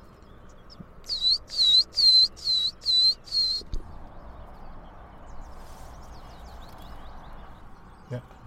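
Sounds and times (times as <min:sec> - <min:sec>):
willow tit (Matkop) singing: 0:00.0 - 0:08.4.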